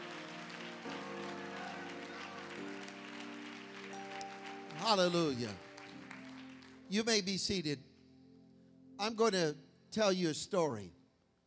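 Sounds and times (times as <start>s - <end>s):
audience clapping hands: 0.0s - 7.3s
speech: 4.8s - 5.7s, 6.9s - 7.9s, 9.0s - 11.0s.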